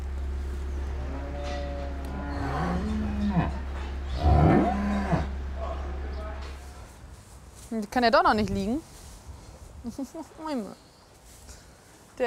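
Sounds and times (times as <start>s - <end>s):
cows mooing in a barn: 0.7s - 6.7s
speech: 7.8s - 8.9s, 9.8s - 10.9s.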